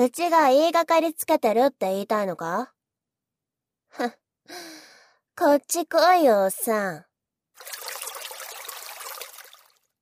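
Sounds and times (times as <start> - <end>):
speech: 0.0 - 2.8, 3.9 - 4.8, 5.4 - 7.9
water trickling at a riverbank: 7.6 - 9.9.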